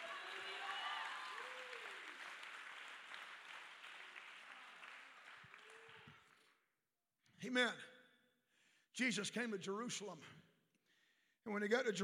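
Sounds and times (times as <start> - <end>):
audience clapping hands: 0.0 - 6.7
speech: 7.4 - 7.9, 9.0 - 10.5, 11.4 - 12.0.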